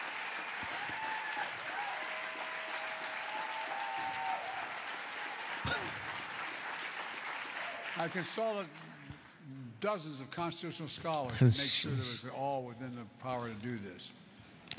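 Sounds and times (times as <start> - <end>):
crowd cheering: 0.0 - 8.2
crowd applauding: 0.0 - 9.3
speech: 8.0 - 8.9, 9.8 - 14.2.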